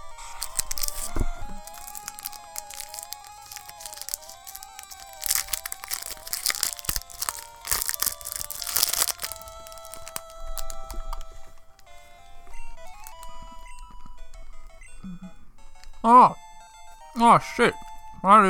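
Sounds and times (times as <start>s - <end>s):
Snickers bar wrapper crinkling: 0.0s - 11.3s
Snickers bar crunching as it is eaten: 0.0s - 11.8s, 12.8s - 13.4s
speech: 16.0s - 16.4s, 17.2s - 18.4s.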